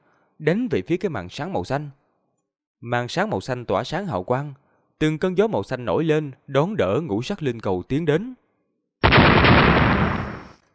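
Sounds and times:
speech: 0:00.4 - 0:02.0, 0:02.8 - 0:08.4
rapid series of loud explosions: 0:09.0 - 0:10.6.

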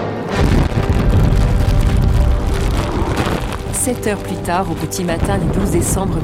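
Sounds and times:
explosions: 0:00.2 - 0:03.8
speech: 0:03.9 - 0:06.2.

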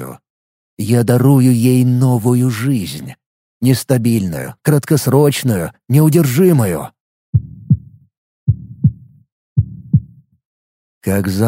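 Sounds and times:
speech: 0:00.8 - 0:07.5, 0:11.0 - 0:11.4
heartbeat sound effect: 0:07.3 - 0:10.3.

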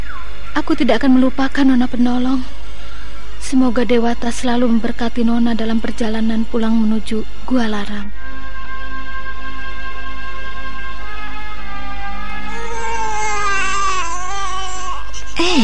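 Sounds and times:
steady tonal background: 0:00.0 - 0:15.6
speech: 0:00.6 - 0:02.6, 0:03.5 - 0:08.5
baby crying: 0:11.7 - 0:15.6.

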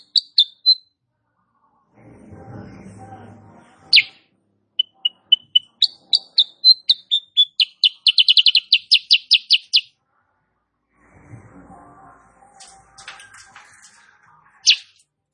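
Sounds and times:
sooty-headed bulbul chirping: 0:00.0 - 0:00.8, 0:03.9 - 0:04.2, 0:04.8 - 0:09.9, 0:14.6 - 0:15.0.

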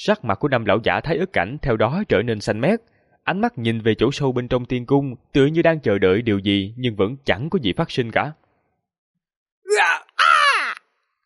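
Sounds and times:
speech: 0:00.0 - 0:08.4
anguished death screams: 0:09.7 - 0:10.9.

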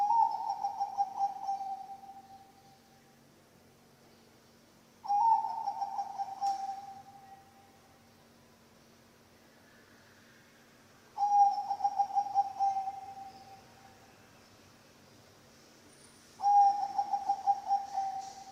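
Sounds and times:
zebra dove cooing: 0:00.0 - 0:02.5, 0:05.0 - 0:07.4, 0:11.2 - 0:13.6, 0:16.4 - 0:18.5.

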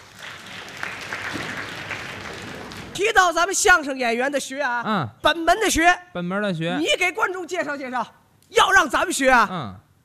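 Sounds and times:
audience applause welcoming two comic crosstalk performers: 0:00.0 - 0:03.0
speech: 0:03.0 - 0:09.8.

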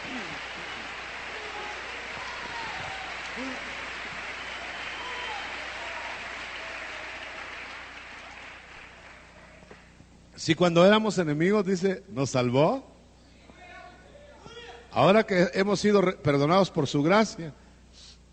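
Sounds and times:
audience applause: 0:00.0 - 0:09.9
speech: 0:10.4 - 0:12.9, 0:15.0 - 0:18.1.

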